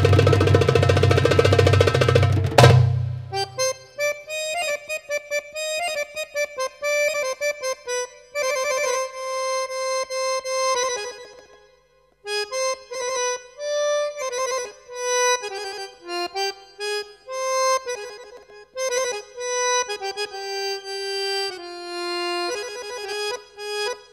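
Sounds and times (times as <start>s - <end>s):
solo accordion: 0.1s - 24.1s.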